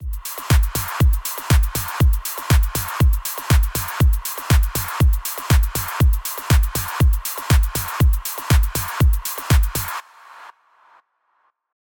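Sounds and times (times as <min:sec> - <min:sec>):
rapid house music: 0:00.0 - 0:10.6.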